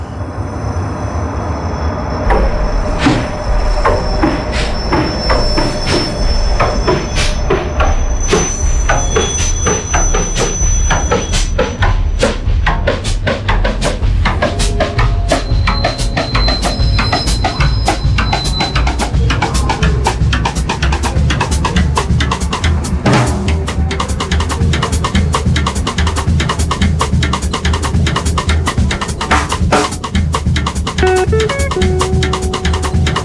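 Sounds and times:
thin high-pitched wheel squeals: 0.0 - 12.2, 14.6 - 20.1
train rolling along rails: 0.0 - 33.2.

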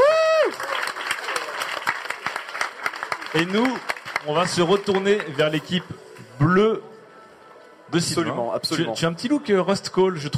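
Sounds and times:
audience applause: 0.0 - 5.9
speech: 3.3 - 6.9, 7.9 - 10.3.

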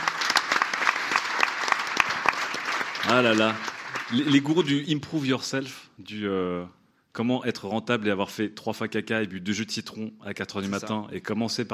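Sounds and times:
audience applause from a crowd: 0.0 - 4.7
speech: 3.1 - 11.7.

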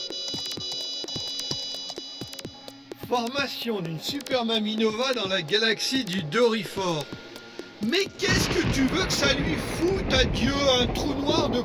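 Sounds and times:
electronic alert beeping: 0.0 - 8.3
speech: 3.0 - 7.2, 7.8 - 11.6.

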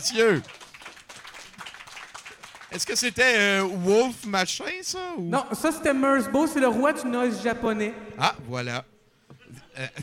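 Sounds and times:
speech: 0.0 - 0.6, 2.7 - 8.9, 9.5 - 10.0
audience applauding: 0.0 - 4.4.

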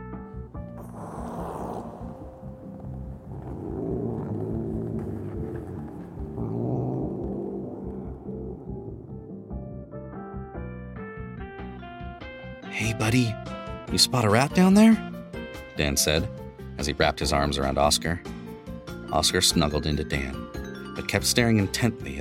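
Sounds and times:
cat's low throaty growl: 0.8 - 9.7
speech: 13.0 - 15.1, 15.8 - 18.3, 19.1 - 22.1.

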